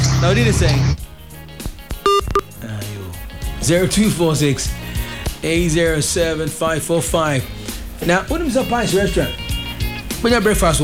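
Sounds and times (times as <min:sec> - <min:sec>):
speech: 0:00.2 - 0:01.0, 0:03.6 - 0:04.8, 0:05.4 - 0:09.4, 0:10.2 - 0:10.8
telephone dialing tones: 0:02.1 - 0:02.5.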